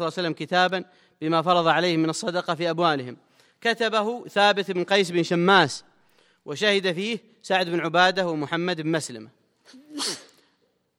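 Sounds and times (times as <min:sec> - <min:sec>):
speech: 0:00.0 - 0:10.1
sneeze: 0:09.6 - 0:10.6.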